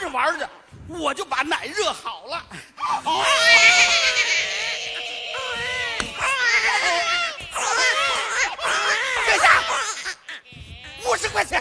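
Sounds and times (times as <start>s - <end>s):
speech: 0.1s - 4.2s
comic performer imitating crying babies: 2.8s - 11.5s.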